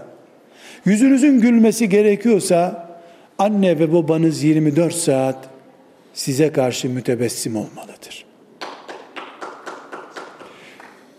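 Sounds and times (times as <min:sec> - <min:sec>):
speech: 0:00.8 - 0:02.8, 0:03.4 - 0:05.5, 0:06.2 - 0:08.3
audience applauding: 0:08.6 - 0:11.1.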